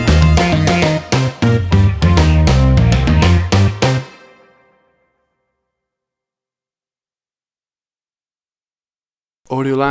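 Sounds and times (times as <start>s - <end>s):
70s funk band music theme: 0.0s - 4.7s.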